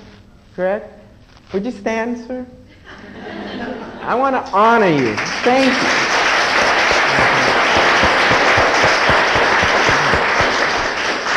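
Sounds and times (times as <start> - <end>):
speech: 0.6 - 6.0
laughter: 2.7 - 4.3, 5.9 - 11.2
crowd applause: 4.7 - 11.3.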